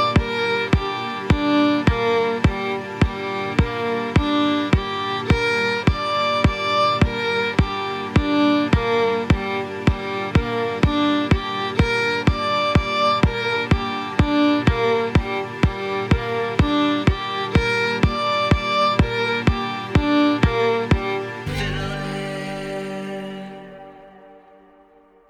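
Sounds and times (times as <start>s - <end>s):
fiddle playing G minor triads with single bows: 0.0s - 25.0s.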